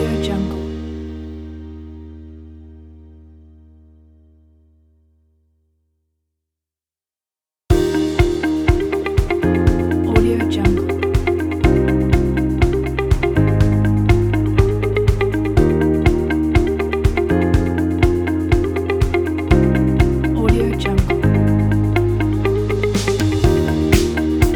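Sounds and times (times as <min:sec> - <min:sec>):
inspiring corporate motivational background music: 0:00.0 - 0:02.0, 0:07.7 - 0:24.5.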